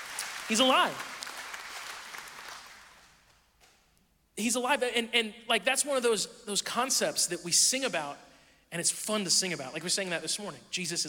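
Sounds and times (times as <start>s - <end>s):
audience applause: 0.0s - 3.2s
speech: 0.5s - 1.1s, 4.4s - 11.0s.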